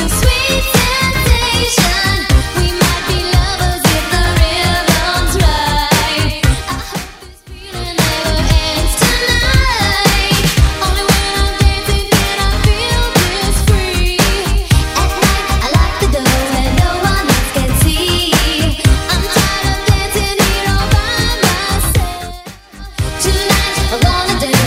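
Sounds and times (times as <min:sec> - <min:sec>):
80s DJ-friendly drum beat: 0:00.0 - 0:24.6.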